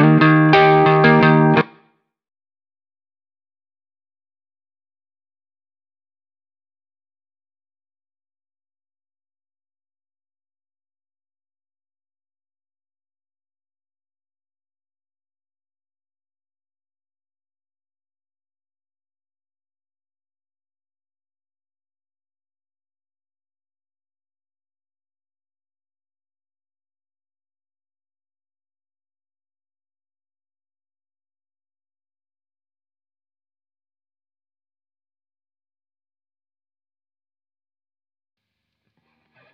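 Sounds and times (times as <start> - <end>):
clean guitar: 0.0 - 1.9.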